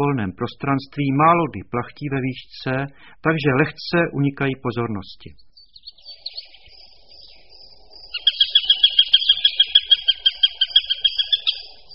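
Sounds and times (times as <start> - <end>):
speech: 0.0 - 5.5
Eurasian sparrowhawk chattering calls: 5.8 - 11.9.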